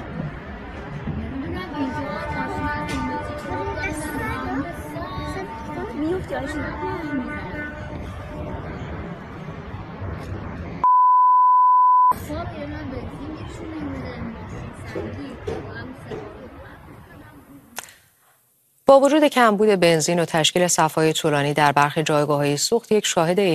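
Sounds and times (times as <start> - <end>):
crowd chatter: 0.0 - 10.8, 12.2 - 17.8
car horns honking in protest: 2.1 - 9.1
speech: 6.4 - 7.3, 18.9 - 23.5
steady high electronic beep: 10.8 - 12.2.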